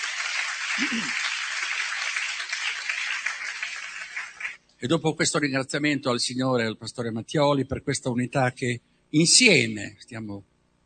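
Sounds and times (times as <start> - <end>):
audience applause: 0.0 - 4.6
speech: 0.8 - 1.3, 4.8 - 10.5.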